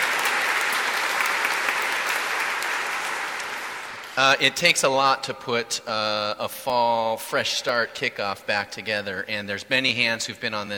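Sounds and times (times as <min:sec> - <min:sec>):
audience applause: 0:00.0 - 0:04.2
speech: 0:04.2 - 0:10.7.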